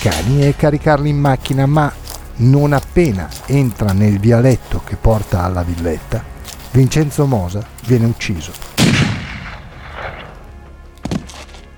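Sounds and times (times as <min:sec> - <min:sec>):
speech: 0:00.0 - 0:08.7
single gunshot: 0:08.8 - 0:10.3.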